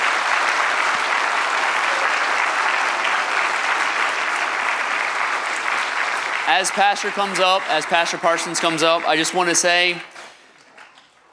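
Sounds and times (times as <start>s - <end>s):
audience applause: 0.0s - 10.1s
speech: 6.5s - 10.1s.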